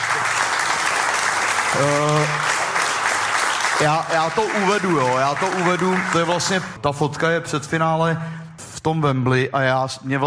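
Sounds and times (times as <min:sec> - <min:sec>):
audience applause: 0:00.0 - 0:06.8
speech: 0:01.7 - 0:02.4, 0:03.8 - 0:10.2.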